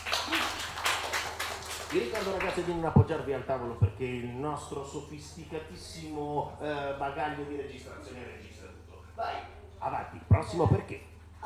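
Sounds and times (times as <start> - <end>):
small group clapping: 0.0 - 3.1
speech: 1.9 - 11.1.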